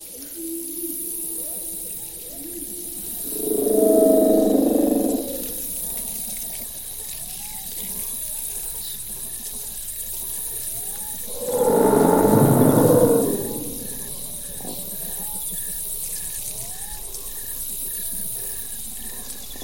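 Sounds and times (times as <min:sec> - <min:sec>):
dinosaur cry: 0:03.3 - 0:05.7, 0:11.3 - 0:14.1.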